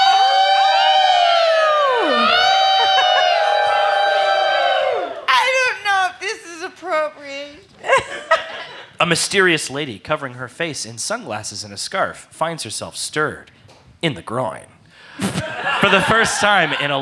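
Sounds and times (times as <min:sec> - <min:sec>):
club crowd of women howling and cheering: 0:00.0 - 0:06.6
laughter: 0:00.0 - 0:09.8, 0:15.2 - 0:17.0
speech: 0:09.0 - 0:17.0.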